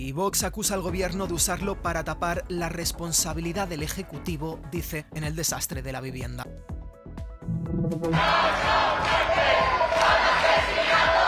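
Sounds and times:
speech: 0.0 - 6.7, 7.9 - 8.8
protest crowd chanting: 8.0 - 11.2.

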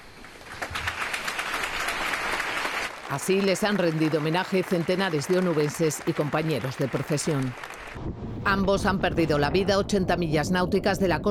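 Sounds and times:
applause at a funeral: 0.0 - 8.0
speech: 3.1 - 11.2.

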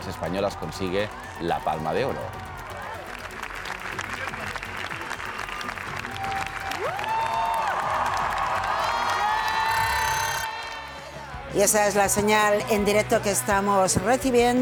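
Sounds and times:
long audience applause: 0.0 - 11.0
speech: 0.1 - 2.4, 11.6 - 14.6.

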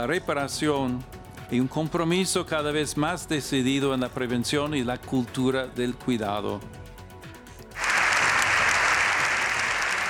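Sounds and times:
speech: 0.0 - 6.8
applause in parliament: 7.8 - 10.0.

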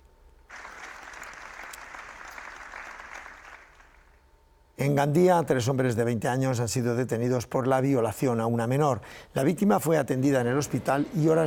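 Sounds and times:
applause after minute of silence: 0.5 - 4.3
speech: 4.8 - 11.4.

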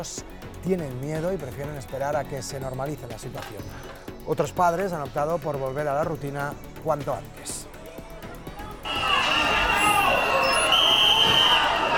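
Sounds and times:
speech: 0.0 - 7.7
crowd whistling in protest: 8.6 - 11.9.

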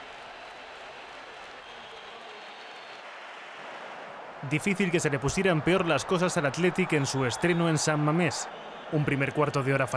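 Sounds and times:
San Mamés stadium crowd applauding: 0.0 - 9.9
crowd whistling: 1.4 - 3.0, 4.3 - 9.9
speech: 4.4 - 9.9.

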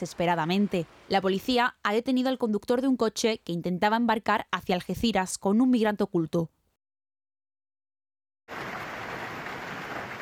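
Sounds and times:
speech: 0.0 - 6.6
intense hailstorm in Talavera de la Reina: 8.5 - 10.2.

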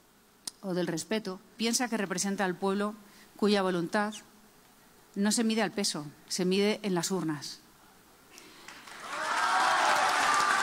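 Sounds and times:
speech: 0.6 - 4.3, 5.2 - 7.6
auditorium audience applauding: 8.6 - 10.6.

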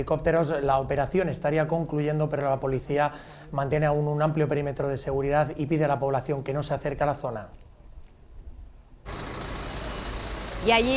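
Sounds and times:
speech: 0.0 - 7.6, 10.6 - 10.9
water cannon spray from riot police trucks in Berlin heat: 9.1 - 10.9.

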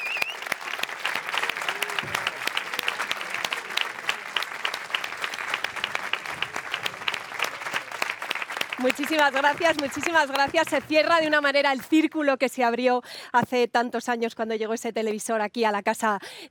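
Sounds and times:
audience applause: 0.0 - 11.5
speech: 8.8 - 16.4.

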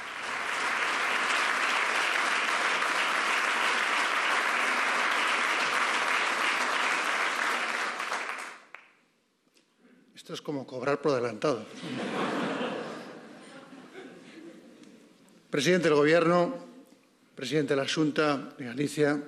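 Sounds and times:
sustained applause from a large audience: 0.0 - 8.7
speech: 10.3 - 12.4, 15.5 - 16.6, 17.4 - 19.2
laughter: 11.7 - 15.0.

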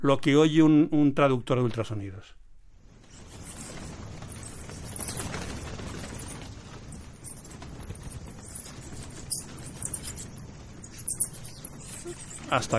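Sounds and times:
speech: 0.0 - 2.4, 12.5 - 12.7
bats flapping and fluttering around: 2.7 - 12.7.

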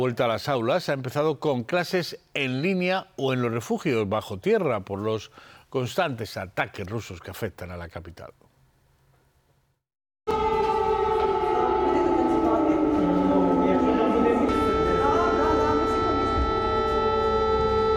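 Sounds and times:
speech: 0.0 - 8.4
air raid siren wailing: 10.3 - 17.9.

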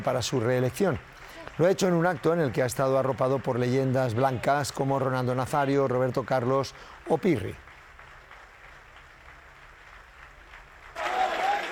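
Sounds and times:
speech: 0.0 - 7.7
audience ovation applause: 0.0 - 11.7.

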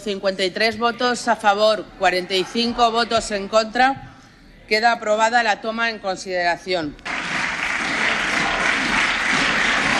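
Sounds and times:
speech: 0.0 - 4.1, 4.7 - 7.1
parliamentary applause: 7.0 - 9.9.

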